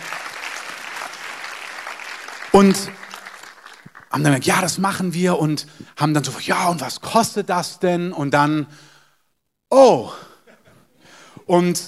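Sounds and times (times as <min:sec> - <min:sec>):
audience applause: 0:00.0 - 0:04.2
speech: 0:02.6 - 0:03.1, 0:04.2 - 0:08.9, 0:09.7 - 0:10.3, 0:11.5 - 0:11.8.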